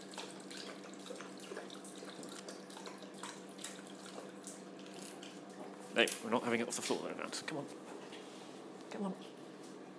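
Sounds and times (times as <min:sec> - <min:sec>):
water pouring from a sink tap: 0:00.0 - 0:05.4
speech: 0:06.0 - 0:07.9, 0:08.9 - 0:09.3.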